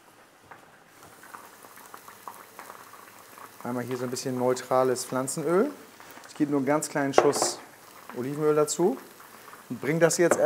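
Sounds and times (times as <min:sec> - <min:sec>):
food simmering in a pan: 0:00.0 - 0:10.4
pops and crackles: 0:00.5 - 0:05.2, 0:07.1 - 0:10.4
speech: 0:03.6 - 0:07.6, 0:08.2 - 0:09.1, 0:09.7 - 0:10.4.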